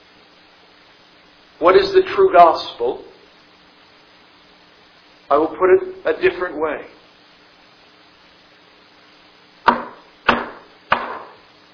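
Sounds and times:
speech: 1.6 - 3.1, 5.3 - 7.0
knocking on a door: 9.7 - 11.4.

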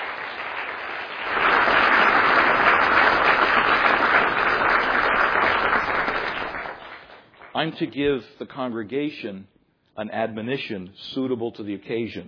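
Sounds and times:
audience applause: 0.0 - 7.8
speech: 7.6 - 12.2.

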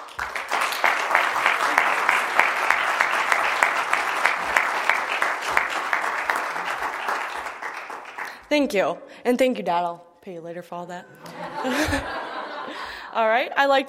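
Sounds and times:
audience applauding a graduate at a graduation ceremony: 0.0 - 8.5
speech: 8.5 - 12.2, 13.2 - 13.8
laughter: 11.0 - 13.2.

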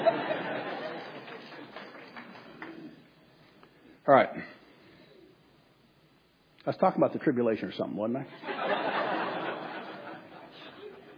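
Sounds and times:
laughter: 0.0 - 2.4, 8.3 - 11.1
audience applauding: 0.0 - 3.1
speech: 4.1 - 4.6, 6.6 - 8.8.

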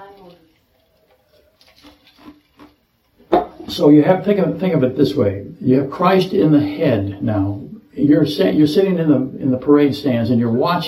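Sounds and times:
water pouring: 0.0 - 4.8
speech: 3.7 - 10.8.

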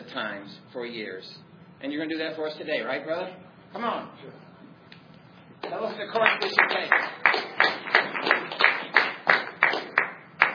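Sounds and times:
speech: 0.2 - 4.5, 5.7 - 8.4
audience applause: 6.1 - 10.5.

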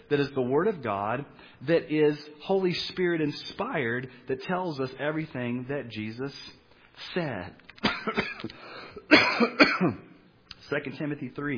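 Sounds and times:
speech: 0.1 - 10.1, 10.7 - 11.5
repeated coughing: 7.8 - 10.2.

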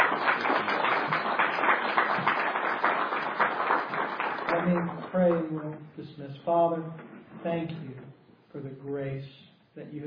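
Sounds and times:
audience applause at a religious conference gathering: 0.0 - 5.5
speech: 4.6 - 7.9, 8.6 - 10.0.

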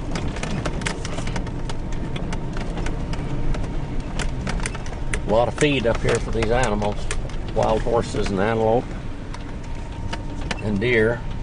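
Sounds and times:
off-road vehicle engine while rock crawling: 0.0 - 11.4
tires grinding over rock: 0.0 - 11.4
speech: 5.3 - 9.0, 10.6 - 11.3.

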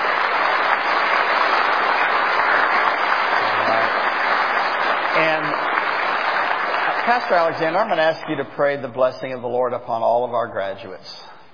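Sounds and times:
audience applause: 0.0 - 8.9
speech: 7.1 - 11.4.

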